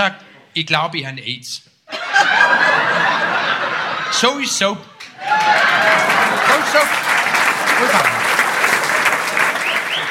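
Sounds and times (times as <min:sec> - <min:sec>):
speech: 0:00.0 - 0:07.1, 0:07.8 - 0:08.2
laughter: 0:01.9 - 0:10.1
audience applause: 0:05.0 - 0:10.1.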